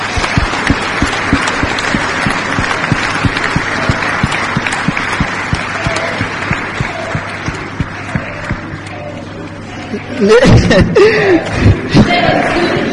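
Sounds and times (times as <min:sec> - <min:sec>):
audience applauding: 0:00.0 - 0:09.6
laughter: 0:09.7 - 0:12.8.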